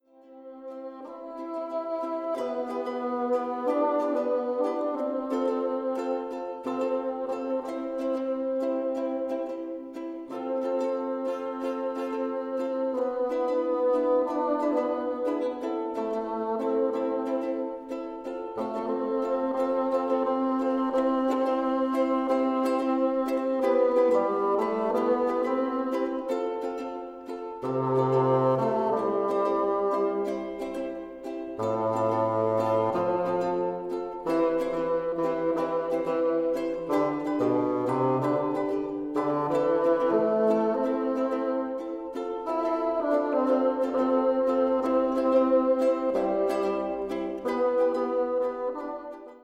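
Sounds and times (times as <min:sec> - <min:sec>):
ukulele: 0:00.0 - 0:49.4.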